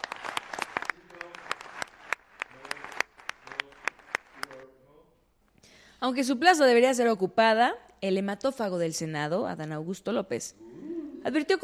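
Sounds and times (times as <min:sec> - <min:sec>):
audience applause: 0:00.0 - 0:04.6
speech: 0:06.0 - 0:11.6.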